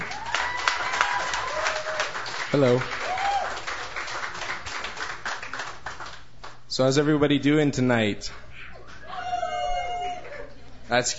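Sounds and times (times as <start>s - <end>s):
audience applause welcoming an opening act at a songwriter's stage show: 0.0s - 6.7s
speech: 2.5s - 3.0s, 6.8s - 8.4s, 10.9s - 11.1s.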